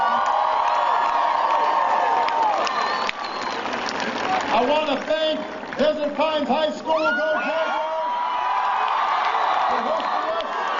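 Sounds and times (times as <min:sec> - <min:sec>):
crowd cheering and whooping at a high school event: 0:00.0 - 0:04.6, 0:06.8 - 0:10.7
speech: 0:04.6 - 0:07.8.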